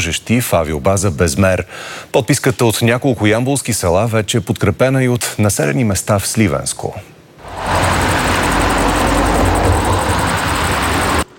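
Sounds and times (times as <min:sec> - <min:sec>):
speech: 0:00.0 - 0:07.7
cars driving out of an airbase: 0:07.4 - 0:11.3.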